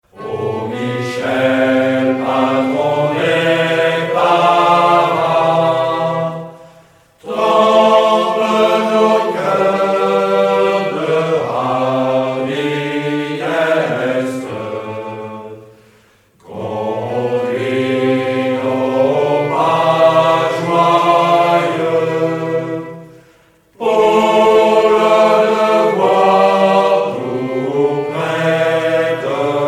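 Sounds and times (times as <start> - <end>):
hymn: 0.0 - 29.6.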